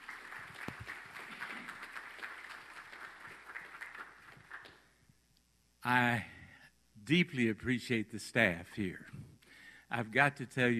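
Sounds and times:
crowd clapping: 0.0 - 5.0
speech: 5.8 - 6.3, 7.1 - 9.2, 9.9 - 10.7.

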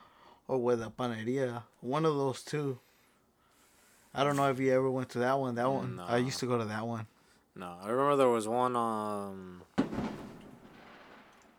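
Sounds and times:
speech: 0.5 - 2.9, 4.1 - 10.1
fireworks popping outside: 9.8 - 11.5.

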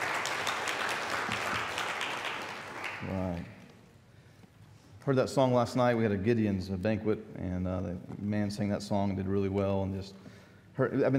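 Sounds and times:
audience applause: 0.0 - 3.4
speech: 3.0 - 3.6, 5.0 - 11.1.

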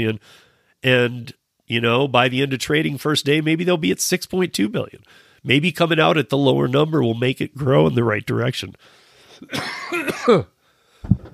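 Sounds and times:
speech: 0.0 - 11.3
man coughing: 9.4 - 10.6.

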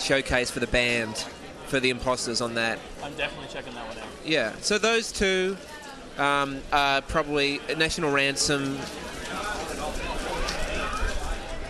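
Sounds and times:
speech: 0.1 - 9.2
rain dripping from an umbrella: 5.5 - 11.6.

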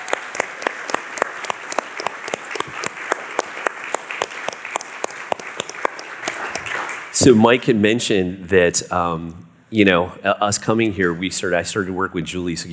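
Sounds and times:
round of applause: 0.0 - 7.3
speech: 7.2 - 12.7.

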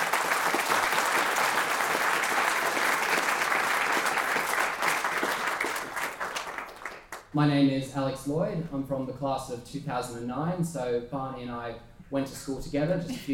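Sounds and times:
large crowd clapping to welcome a guest at a biography launch: 0.0 - 7.4
speech: 7.4 - 13.3.

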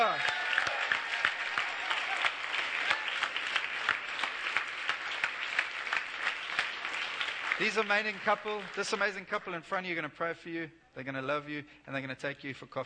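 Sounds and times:
audience clapping: 0.0 - 9.7
speech: 7.6 - 12.8.

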